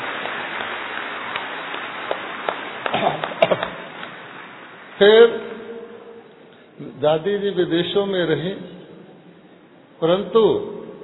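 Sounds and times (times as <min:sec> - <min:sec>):
loud applause from audience: 0:00.0 - 0:06.0
speech: 0:05.0 - 0:05.5, 0:07.0 - 0:08.7, 0:10.0 - 0:10.7.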